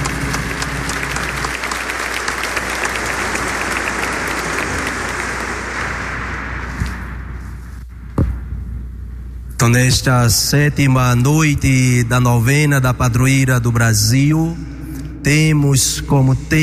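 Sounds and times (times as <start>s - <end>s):
applause: 0.0s - 7.0s
speech: 9.7s - 16.6s.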